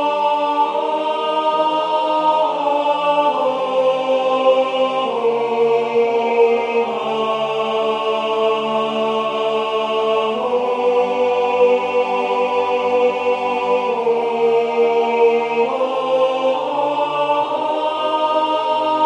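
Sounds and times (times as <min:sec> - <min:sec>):
tenor singing: 0:00.0 - 0:19.0.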